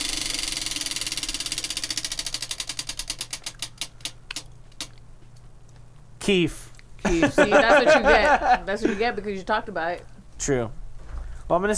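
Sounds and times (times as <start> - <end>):
spinning prize wheel clicking: 0.0 - 5.0
speech: 6.3 - 10.8, 11.5 - 11.7
laughter: 7.0 - 9.3.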